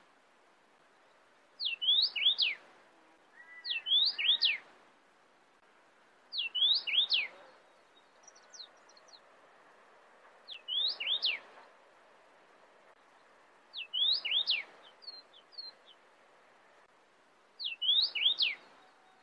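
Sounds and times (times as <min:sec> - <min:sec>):
cardinal singing sweeping whistled phrases: 0:01.6 - 0:02.6, 0:03.4 - 0:04.6, 0:06.3 - 0:07.4, 0:10.5 - 0:11.4, 0:13.8 - 0:15.7, 0:17.6 - 0:19.2.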